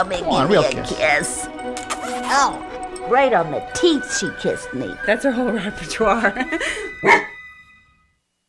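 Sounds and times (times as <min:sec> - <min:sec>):
speech: 0:00.0 - 0:07.4
dog barking: 0:07.0 - 0:07.4.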